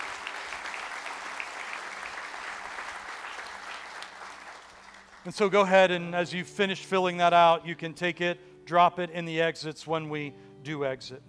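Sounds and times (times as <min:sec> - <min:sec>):
audience applause: 0:00.0 - 0:05.3
speech: 0:05.2 - 0:11.2.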